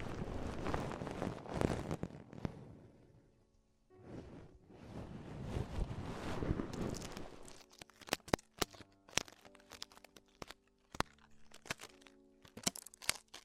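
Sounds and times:
dense rustling crunching: 0:00.0 - 0:02.4, 0:04.1 - 0:13.4
sharp sparse clicks and crackles: 0:00.0 - 0:02.7, 0:05.8 - 0:13.4.

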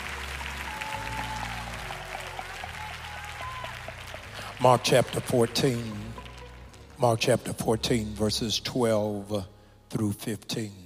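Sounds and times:
audience clapping hands: 0:00.0 - 0:08.0
speech: 0:04.6 - 0:06.1, 0:07.0 - 0:10.8.

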